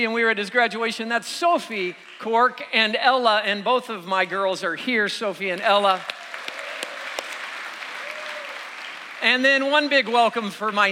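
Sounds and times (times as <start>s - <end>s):
speech: 0.0s - 6.2s, 9.2s - 10.9s
audience applause for family members introduced at a gathering: 5.5s - 10.9s.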